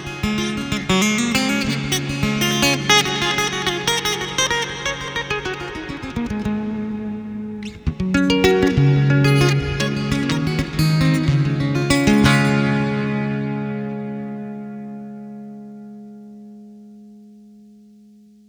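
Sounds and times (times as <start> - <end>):
guitar dance music in D major: 0.0 - 18.3.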